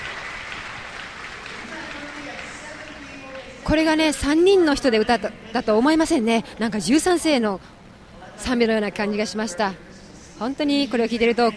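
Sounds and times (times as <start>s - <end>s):
audience applause: 0.0s - 3.7s
speech: 3.7s - 7.8s, 8.4s - 11.5s.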